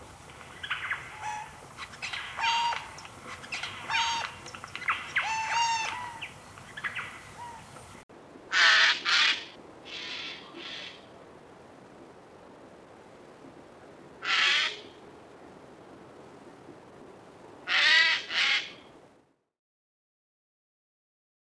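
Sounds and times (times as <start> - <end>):
jay calling during courtship display: 0.4 - 11.0, 14.2 - 15.0, 17.6 - 18.9.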